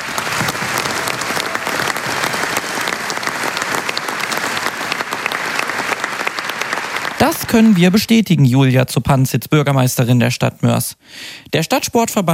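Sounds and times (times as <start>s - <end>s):
audience applause: 0.0s - 8.3s
speech: 7.2s - 12.3s.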